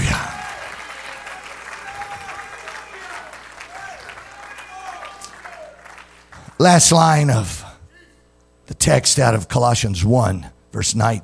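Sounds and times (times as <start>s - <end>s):
scattered shouts and raised voices: 0.0s - 5.9s
audience clapping: 0.0s - 7.2s
speech: 6.6s - 7.6s, 8.8s - 11.2s.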